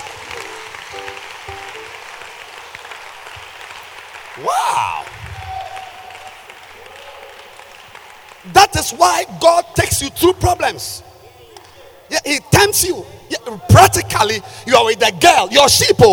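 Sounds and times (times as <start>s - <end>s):
audience clapping hands: 0.0s - 9.3s
speech: 4.4s - 5.1s, 8.5s - 11.1s, 12.1s - 16.1s.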